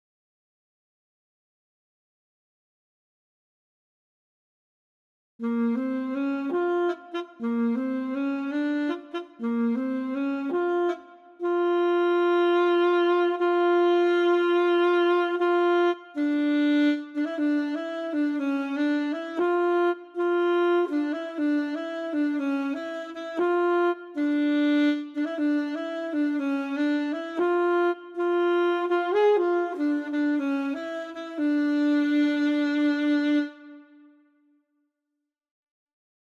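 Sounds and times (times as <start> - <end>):
alto saxophone: 5.4 - 34.4.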